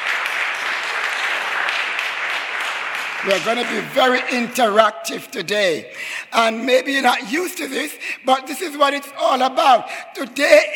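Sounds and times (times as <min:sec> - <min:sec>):
audience clapping: 0:00.0 - 0:04.8
speech: 0:03.2 - 0:10.7.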